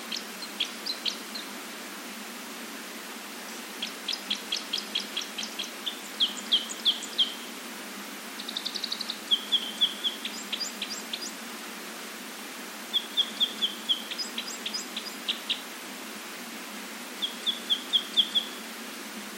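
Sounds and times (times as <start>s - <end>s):
red crossbill chip calls: 0.1s - 1.5s, 3.8s - 7.4s, 8.4s - 11.4s, 12.9s - 15.6s, 17.2s - 18.6s.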